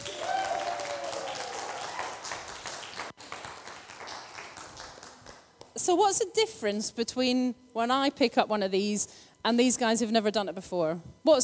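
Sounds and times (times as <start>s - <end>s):
cheer or whistle: 0.0s - 2.3s
audience applause: 0.0s - 5.4s
speech: 5.8s - 11.4s.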